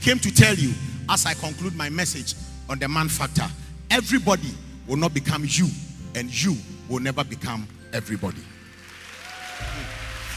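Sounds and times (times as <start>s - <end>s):
speech: 0.0s - 8.5s
audience clapping: 8.6s - 10.3s.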